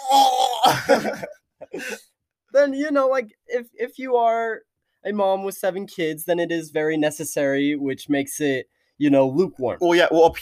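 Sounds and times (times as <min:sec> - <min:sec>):
person coughing and choking: 0:00.0 - 0:02.1
speech: 0:00.1 - 0:01.4, 0:02.6 - 0:10.4.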